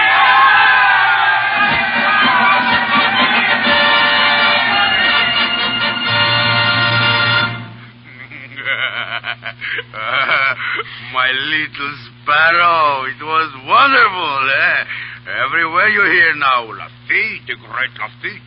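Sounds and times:
crowd cheering in victory: 0.0s - 7.9s
laughter: 1.5s - 5.6s, 7.8s - 11.2s
speech: 11.3s - 14.6s, 15.5s - 18.4s.

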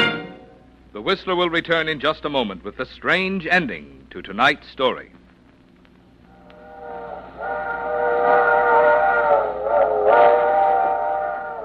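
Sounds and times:
speech: 1.0s - 5.2s
low rumble: 5.4s - 11.4s
steam train whistle warning signal before a crossing: 6.4s - 11.6s.

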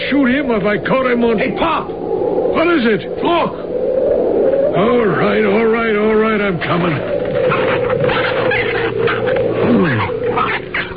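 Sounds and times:
rough hiss: 0.0s - 10.9s
speech: 0.1s - 3.7s, 4.4s - 10.9s
otter caught in a trap crying: 6.6s - 10.9s.

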